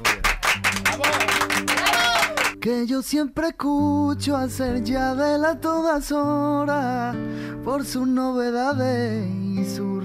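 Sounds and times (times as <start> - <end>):
audience applause: 0.0 - 2.6
speech: 2.6 - 10.0.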